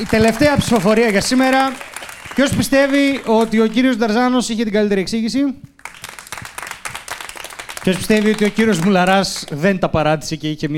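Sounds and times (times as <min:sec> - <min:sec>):
audience applause: 0:00.0 - 0:04.2, 0:05.8 - 0:09.7
speech: 0:00.0 - 0:05.7, 0:07.8 - 0:10.7.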